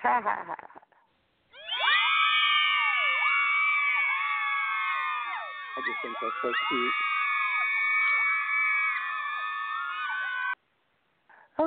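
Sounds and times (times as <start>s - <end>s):
speech: 0.1s - 0.8s, 5.8s - 7.2s
canned crowd cheer sound effect: 1.6s - 10.6s.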